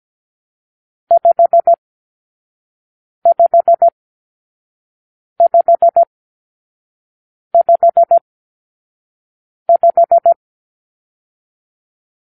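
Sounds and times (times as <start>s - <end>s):
morse code for numeral five: 1.1s - 1.8s, 3.3s - 3.9s, 5.4s - 6.1s, 7.6s - 8.2s, 9.7s - 10.4s.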